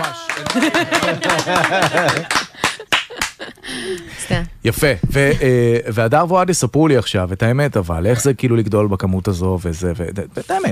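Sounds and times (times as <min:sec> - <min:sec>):
scattered sharp hand claps: 0:00.0 - 0:03.4
speech: 0:00.4 - 0:02.4, 0:03.7 - 0:10.6
voiced laughter: 0:00.4 - 0:03.8.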